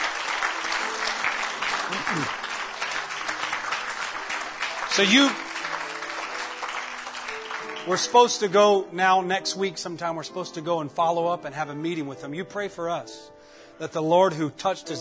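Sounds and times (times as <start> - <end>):
audience applauding: 0.0 - 8.5
speech: 1.9 - 2.4, 5.0 - 5.4, 7.9 - 14.9.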